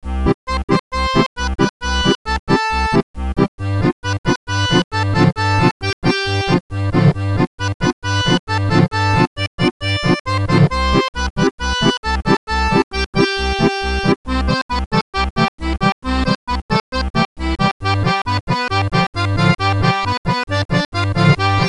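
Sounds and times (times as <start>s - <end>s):
main music: 0.0s - 21.6s.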